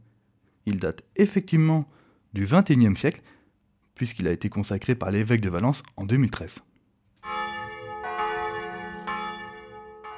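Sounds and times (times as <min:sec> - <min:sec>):
speech: 0:00.6 - 0:03.4, 0:04.0 - 0:07.4
church bell ringing: 0:07.2 - 0:10.1.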